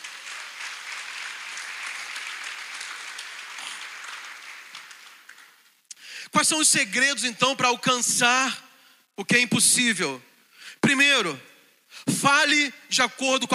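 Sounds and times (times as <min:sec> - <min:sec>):
audience applauding: 0:00.0 - 0:05.8
speech: 0:06.3 - 0:10.3, 0:10.9 - 0:11.5, 0:12.2 - 0:13.5.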